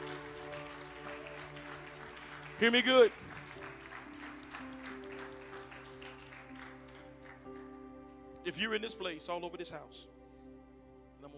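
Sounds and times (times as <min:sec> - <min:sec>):
audience clapping hands: 0:00.0 - 0:07.8
speech: 0:02.6 - 0:03.3, 0:08.5 - 0:10.2.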